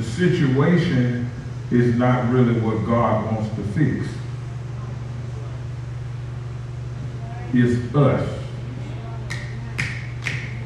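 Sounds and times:
speech: 0.2 - 4.2, 7.5 - 8.4
single hand clap from audience: 9.3 - 10.6.

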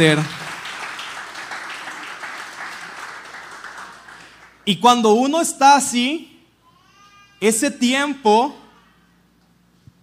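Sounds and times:
speech: 0.0 - 0.4, 4.7 - 6.3, 7.4 - 8.6
crowd applauding: 0.0 - 4.6.

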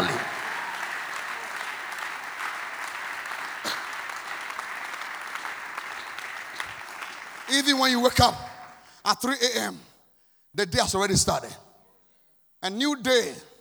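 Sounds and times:
sustained crowd applause: 0.0 - 8.8
speech: 7.5 - 9.9, 10.6 - 11.6, 12.6 - 13.5.

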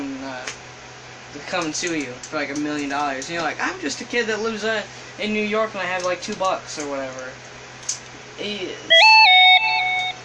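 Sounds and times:
speech: 1.4 - 7.5, 8.4 - 9.4
phone notification chime: 8.9 - 10.2.

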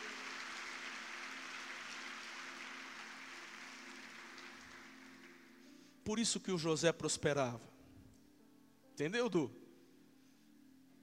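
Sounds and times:
audience applause: 0.0 - 5.6
speech: 6.1 - 7.7, 9.0 - 9.6.

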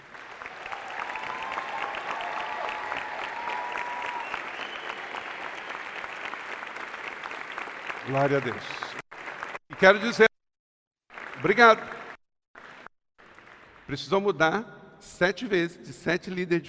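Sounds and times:
crowd clapping: 0.0 - 10.3, 11.1 - 14.0
high whistle or cheer: 3.7 - 5.2
speech: 8.1 - 8.8, 9.8 - 10.3, 11.4 - 11.9, 13.9 - 16.6.

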